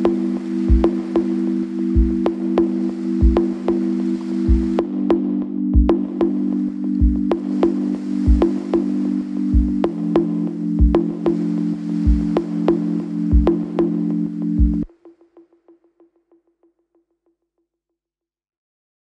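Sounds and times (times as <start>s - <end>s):
sine wave tones: 0.0s - 14.9s.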